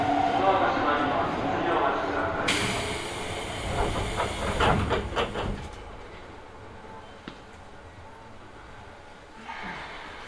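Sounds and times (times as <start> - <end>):
Hokuso Railway and Toei Asakusa Line train rumble: 0.0 - 9.4.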